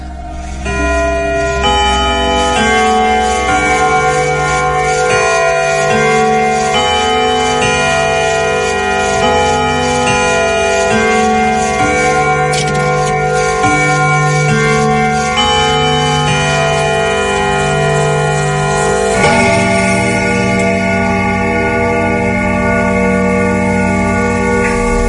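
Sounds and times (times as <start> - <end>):
large clock chiming a slow melody of bell tones: 0.0 - 25.0.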